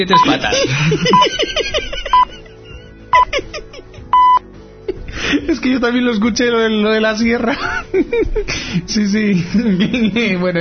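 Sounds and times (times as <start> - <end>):
speech: 0.0 - 1.9, 5.5 - 10.5
laughter: 0.2 - 4.1, 7.4 - 8.7, 9.3 - 10.5
mobile phone number being dialed with electronic tone beeps: 4.1 - 4.4.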